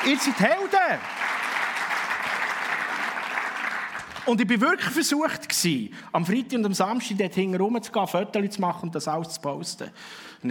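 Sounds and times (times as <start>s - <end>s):
speech: 0.0s - 1.3s, 4.2s - 10.4s
audience applause: 0.0s - 4.4s.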